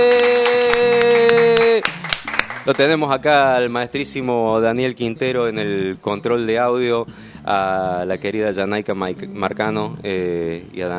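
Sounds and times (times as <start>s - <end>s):
applause machine claps on a Spanish-language studio show: 0.0s - 3.0s
speech: 2.6s - 10.9s.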